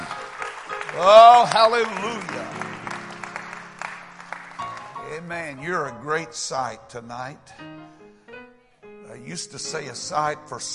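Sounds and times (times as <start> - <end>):
audience clapping: 0.0 - 5.4
speech: 1.0 - 2.6, 5.1 - 8.0, 9.2 - 10.7.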